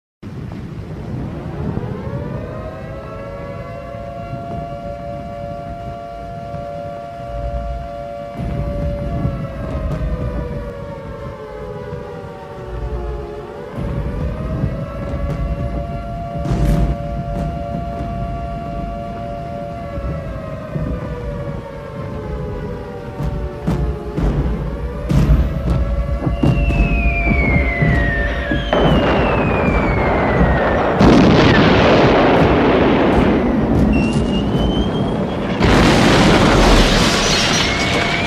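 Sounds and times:
bombing explosions: 0:07.7 - 0:10.9, 0:12.7 - 0:38.2.

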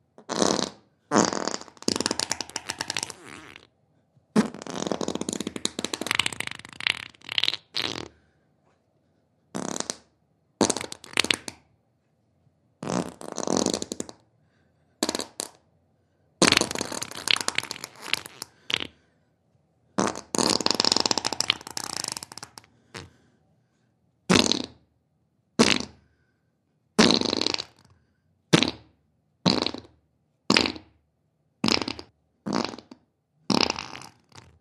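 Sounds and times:
human fart: 0:00.2 - 0:03.7, 0:04.3 - 0:08.2, 0:09.5 - 0:11.7, 0:12.8 - 0:14.3, 0:15.0 - 0:15.6, 0:16.4 - 0:19.0, 0:20.0 - 0:23.2, 0:24.3 - 0:24.9, 0:25.6 - 0:26.0, 0:27.0 - 0:27.9, 0:28.5 - 0:31.0, 0:31.6 - 0:34.6.

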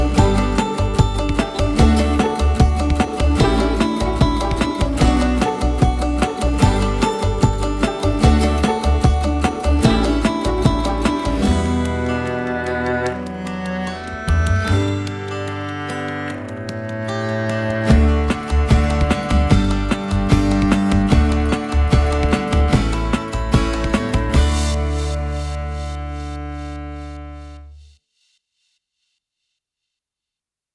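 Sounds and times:
upbeat music: 0:00.0 - 0:26.5.

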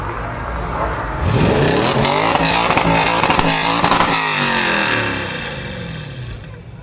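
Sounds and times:
sports car throttle: 0:01.1 - 0:06.6.

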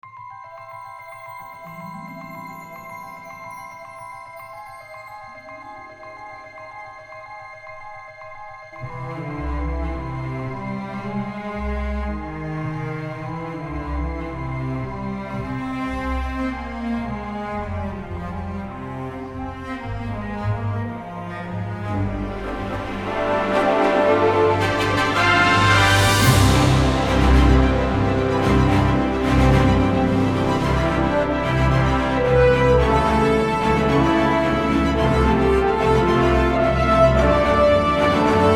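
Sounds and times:
magical background music without words: 0:00.0 - 0:38.5.

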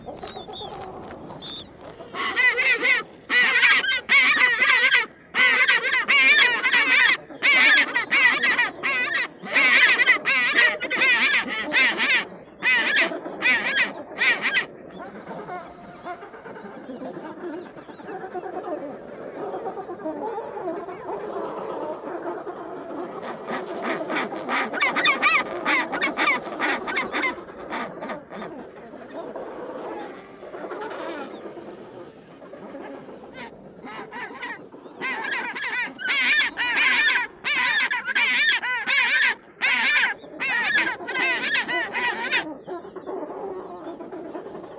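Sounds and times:
penguin: 0:00.0 - 0:44.7.

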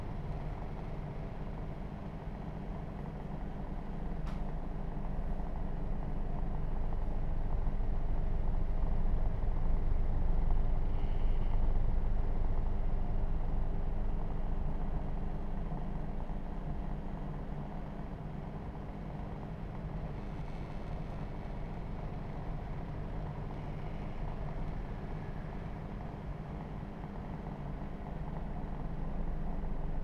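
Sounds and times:
fan: 0:00.0 - 0:30.0.

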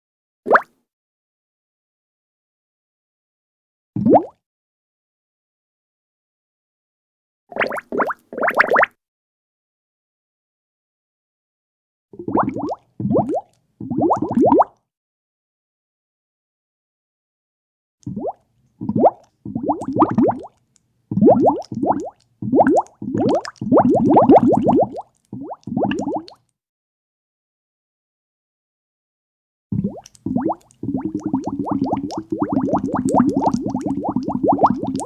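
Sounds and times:
bubbles popping: 0:00.5 - 0:00.7, 0:07.6 - 0:08.9, 0:12.2 - 0:14.7, 0:18.1 - 0:26.4, 0:29.8 - 0:35.0.

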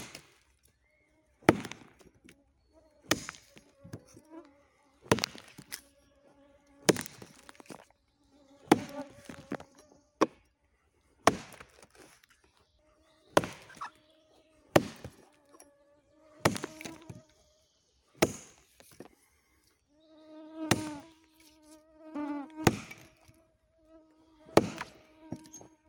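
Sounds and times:
chopping wood in the forest: 0:00.0 - 0:00.4, 0:01.4 - 0:02.2, 0:03.0 - 0:04.2, 0:05.0 - 0:05.8, 0:06.8 - 0:07.8, 0:08.6 - 0:09.6, 0:10.2 - 0:10.5, 0:11.2 - 0:12.1, 0:13.3 - 0:14.0, 0:14.7 - 0:15.6, 0:16.4 - 0:17.2, 0:18.2 - 0:19.1, 0:20.7 - 0:21.1, 0:22.6 - 0:23.3, 0:24.5 - 0:25.7.

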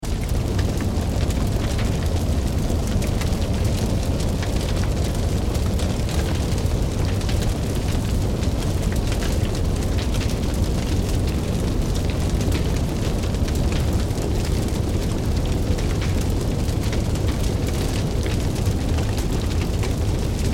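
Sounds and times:
building burning: 0:00.0 - 0:20.5.

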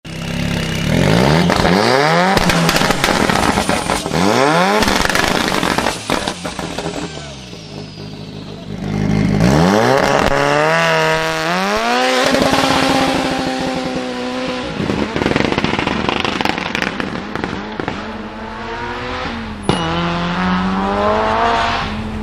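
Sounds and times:
Opel car exhaust with backfires: 0:00.7 - 0:21.9.

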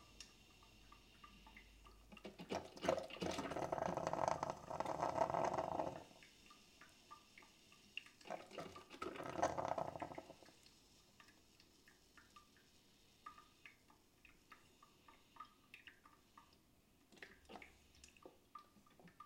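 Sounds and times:
coffee machine: 0:02.5 - 0:06.1, 0:08.4 - 0:10.3.

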